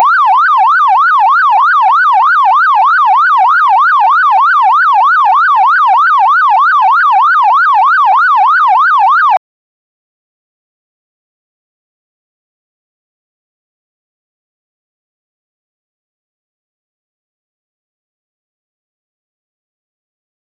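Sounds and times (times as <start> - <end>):
police sirens: 0.0 - 9.4.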